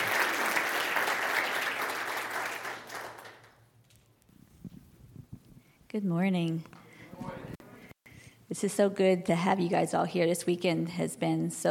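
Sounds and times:
audience applause welcoming a woman onto a stage: 0.0s - 3.6s
speech: 5.9s - 6.8s, 8.6s - 11.6s.

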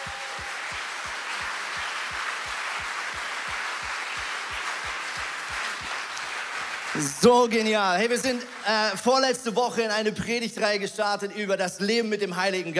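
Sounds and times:
audience applause in church hall: 0.0s - 9.5s
speech: 0.1s - 0.5s, 7.0s - 12.7s.

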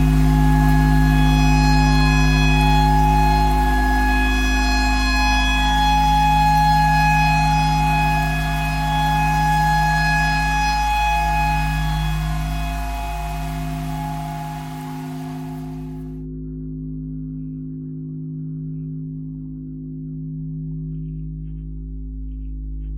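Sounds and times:
clarinet playing pentatonic tornado siren tune: 0.0s - 16.1s.

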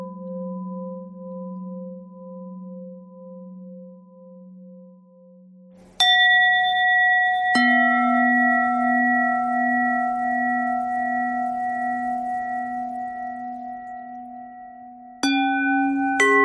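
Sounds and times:
bells ringing: 6.0s - 14.5s, 15.2s - 16.4s.

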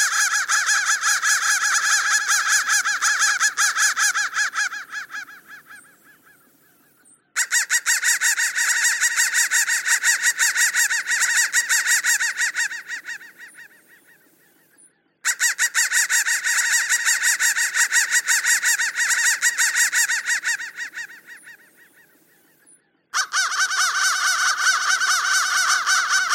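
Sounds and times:
crow cawing: 0.0s - 6.6s, 7.4s - 14.2s, 15.2s - 22.2s, 23.2s - 26.3s.

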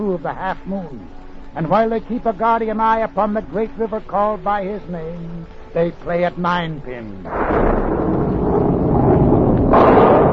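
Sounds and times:
speech: 0.0s - 8.7s
rolling thunder: 7.3s - 10.3s.

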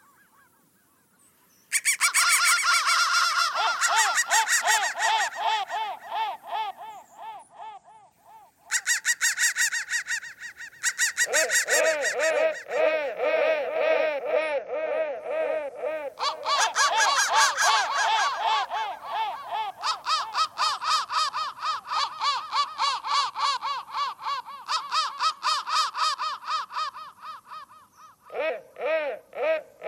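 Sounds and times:
crow thread noise: 1.7s - 29.8s.

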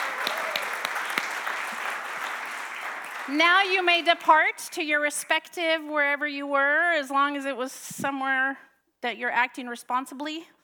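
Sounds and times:
round of applause: 0.0s - 4.3s
speech: 3.3s - 10.6s.

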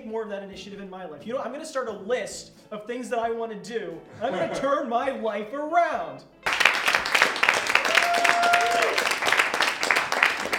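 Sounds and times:
speech: 0.1s - 6.4s
audience applause: 6.4s - 10.5s.

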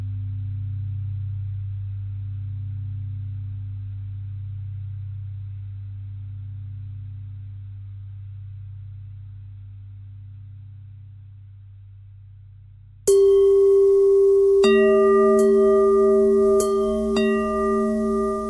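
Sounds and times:
bells ringing: 13.1s - 18.4s.

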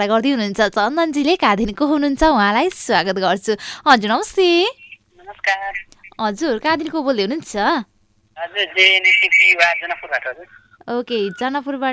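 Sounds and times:
speech: 0.0s - 11.9s
radio playing in the background of a phone caller's line: 4.8s - 6.2s, 8.4s - 11.5s.

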